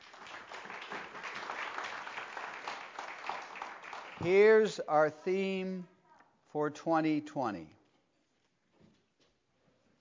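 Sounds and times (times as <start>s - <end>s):
audience applause in church: 0.0s - 4.3s
speech: 4.2s - 5.9s, 6.5s - 7.8s.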